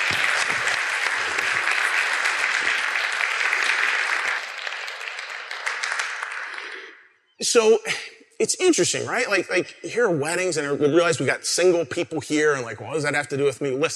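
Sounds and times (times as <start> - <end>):
audience applause: 0.0 - 7.0
speech: 7.4 - 13.9.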